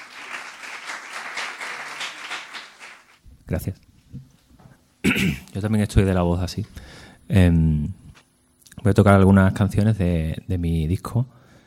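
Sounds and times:
audience applause: 0.0 - 3.2
speech: 3.5 - 4.3, 5.2 - 8.0, 8.8 - 11.4.

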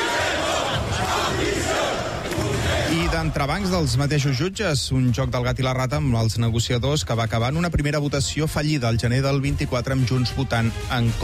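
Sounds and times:
street protest crowd shouting: 0.0 - 3.4
speech: 3.2 - 11.2.

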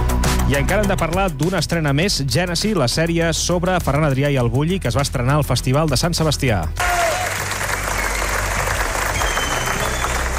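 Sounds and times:
speech: 0.5 - 7.4
large audience applause at festival screening: 6.8 - 10.3.

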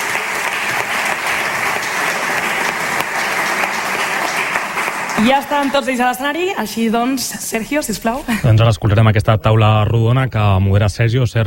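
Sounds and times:
audience applause: 0.0 - 6.6
speech: 5.2 - 11.4.

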